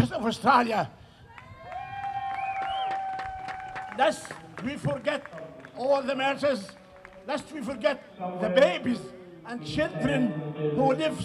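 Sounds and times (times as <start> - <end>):
speech: 0.0 - 1.0, 4.0 - 11.2
rally crowd cheering and shouting: 1.3 - 4.2
scattered clapping: 1.3 - 7.4.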